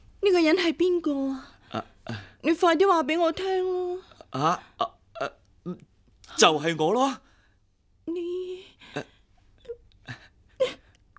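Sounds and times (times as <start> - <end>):
speech: 0.2 - 7.2, 8.1 - 9.1
woman sobbing: 8.1 - 11.0.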